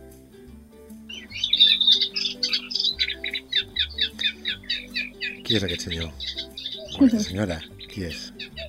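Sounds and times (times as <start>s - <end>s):
Eurasian reed warbler song: 0.9s - 8.6s
speech: 5.5s - 6.4s, 7.0s - 8.4s.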